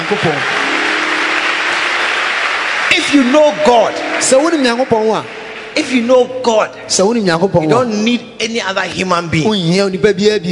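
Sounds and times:
audience clapping: 0.0 - 6.6
speech: 0.1 - 0.7, 3.0 - 10.4.

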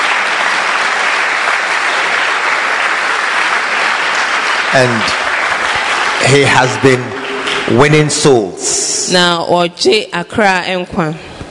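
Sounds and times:
audience clapping: 0.0 - 8.8
speech: 4.7 - 5.2, 6.2 - 11.4.

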